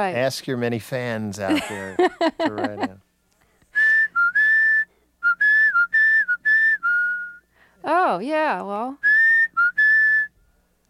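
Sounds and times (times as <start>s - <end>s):
speech: 0.0s - 3.0s, 8.1s - 9.1s
laughter: 1.5s - 3.0s
person whistling a doorbell tune: 3.8s - 7.5s, 9.0s - 10.4s.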